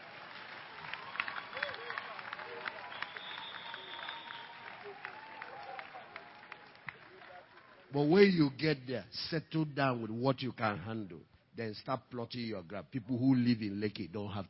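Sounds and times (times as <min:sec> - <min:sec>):
audience clapping hands: 0:00.0 - 0:08.6
speech: 0:07.9 - 0:14.4.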